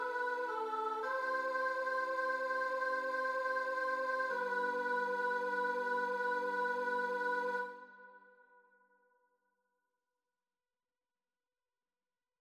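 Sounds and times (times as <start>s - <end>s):
children's choir singing a mass: 0.0s - 7.8s.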